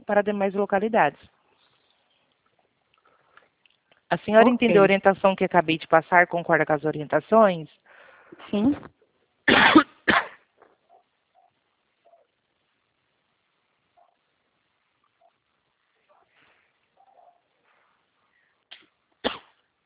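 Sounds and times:
speech: 0:00.1 - 0:01.4, 0:04.1 - 0:10.3
person coughing after choking: 0:09.5 - 0:10.7, 0:19.2 - 0:19.6.

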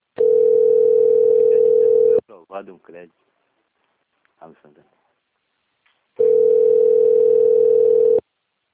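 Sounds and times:
telephone ringback tone of an unanswered call: 0:00.2 - 0:02.2, 0:06.2 - 0:08.2
speech: 0:02.5 - 0:03.3, 0:04.4 - 0:05.0.

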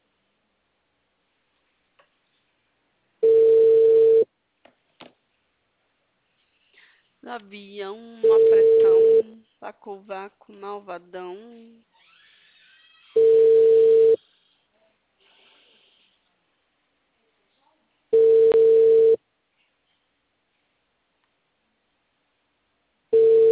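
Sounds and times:
telephone ringback tone before voicemail: 0:03.2 - 0:04.2, 0:08.2 - 0:09.3, 0:13.2 - 0:14.2, 0:18.2 - 0:19.2, 0:23.2 - 0:23.5
speech: 0:07.3 - 0:11.9.

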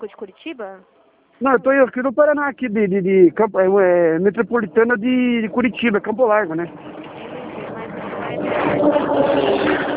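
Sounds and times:
speech: 0:00.0 - 0:07.0
truck passing by: 0:03.3 - 0:09.9.

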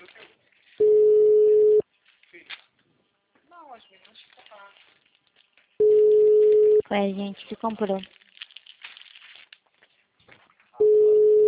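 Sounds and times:
telephone ringback tone on an unanswered call: 0:00.8 - 0:01.8, 0:05.8 - 0:06.8, 0:10.8 - 0:11.4
speech: 0:06.9 - 0:08.2.

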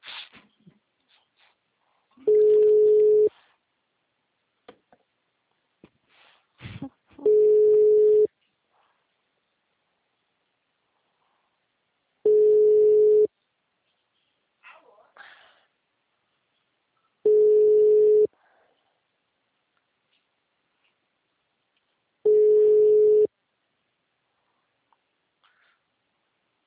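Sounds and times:
telephone busy signal beeps on a call that does not connect: 0:02.3 - 0:03.3, 0:07.2 - 0:08.3, 0:12.3 - 0:13.3, 0:17.3 - 0:18.3, 0:22.3 - 0:23.3
breaths: 0:03.3 - 0:03.7, 0:06.0 - 0:07.0, 0:10.9 - 0:11.7, 0:15.2 - 0:15.8, 0:18.3 - 0:19.1, 0:24.2 - 0:26.0.

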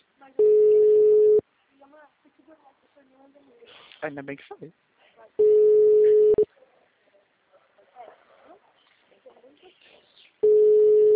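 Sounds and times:
telephone ringback tone on an unanswered call: 0:00.4 - 0:01.4, 0:05.4 - 0:06.5, 0:10.4 - 0:11.1
speech: 0:04.0 - 0:04.9.

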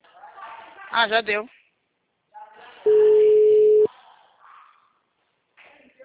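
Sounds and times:
speech: 0:00.9 - 0:01.6
telephone call tone from a number not answering: 0:02.9 - 0:03.9.

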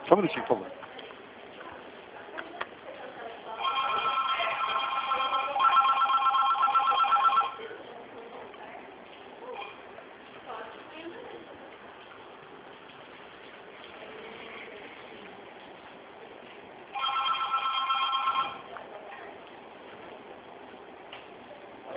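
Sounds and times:
speech: 0:00.1 - 0:00.9
mobile phone ringing with a warbling electronic ringtone: 0:03.6 - 0:07.7, 0:16.9 - 0:18.7.

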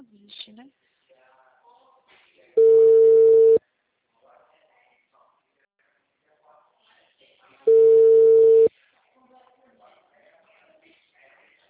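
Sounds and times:
WhatsApp outgoing call ringback tone: 0:02.6 - 0:03.6, 0:07.7 - 0:08.7.

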